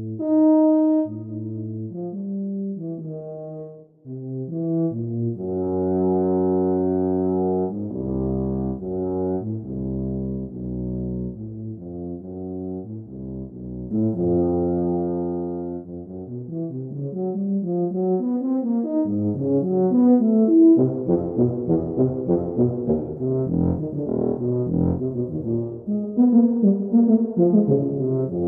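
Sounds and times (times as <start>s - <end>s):
tuba playing intervals: 0.0s - 28.4s.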